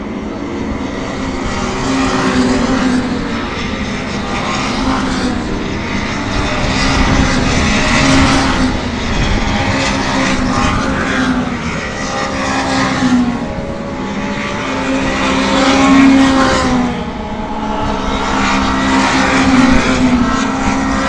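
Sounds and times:
Renault World Series racing cars at Silverstone: 0.0 - 21.0.

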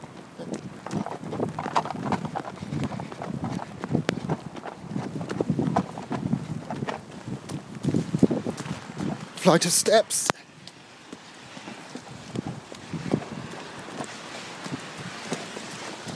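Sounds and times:
running footsteps of people: 0.0 - 16.1
speech: 9.5 - 10.4.

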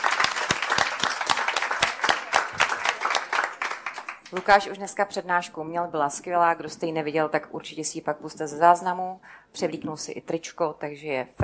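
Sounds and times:
audience applause: 0.0 - 4.5
speech: 4.3 - 11.4.

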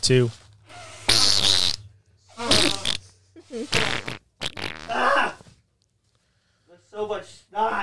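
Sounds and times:
nose blowing: 0.7 - 1.8, 2.4 - 5.3.

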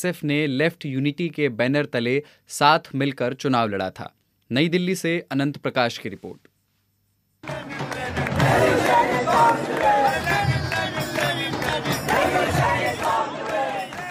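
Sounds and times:
speech: 0.0 - 6.5
students chanting slogans at Jawaharlal Nehru University in New Delhi: 7.5 - 14.0.

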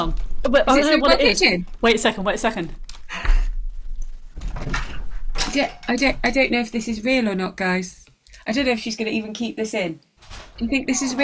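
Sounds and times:
speech: 0.0 - 2.8, 5.5 - 11.2
front door being opened at home: 0.0 - 6.6, 10.2 - 10.9.

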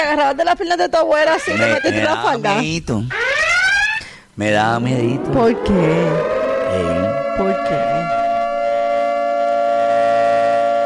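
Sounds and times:
speech: 0.0 - 3.2, 4.4 - 8.0
alarm siren: 1.3 - 2.3, 3.1 - 10.8.

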